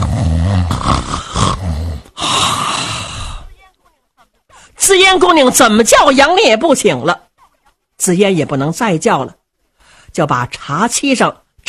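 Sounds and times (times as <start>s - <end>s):
storyteller imitating loud snoring: 0.0s - 3.4s
speech: 5.0s - 7.2s, 8.0s - 9.4s, 10.1s - 11.6s.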